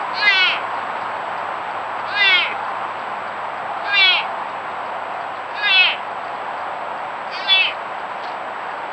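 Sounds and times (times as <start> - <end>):
mule deer sounds: 0.2 - 0.7, 2.1 - 2.6, 3.8 - 4.3, 5.5 - 6.0, 7.3 - 7.8.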